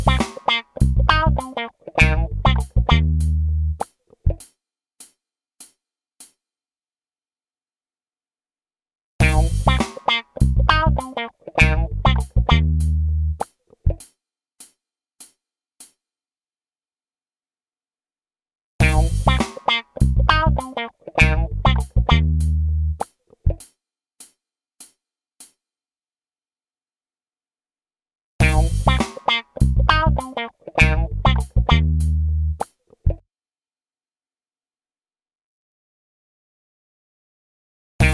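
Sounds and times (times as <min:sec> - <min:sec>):
funk improvisation: 0:00.0 - 0:04.5, 0:09.2 - 0:14.1, 0:18.8 - 0:23.7, 0:28.4 - 0:33.2.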